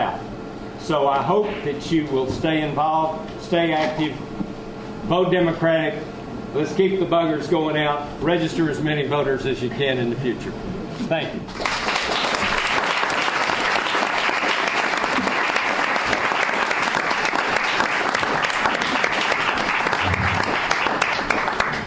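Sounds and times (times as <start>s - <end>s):
speech: 0.9s - 4.4s, 5.1s - 11.7s
audience applause: 11.6s - 21.8s.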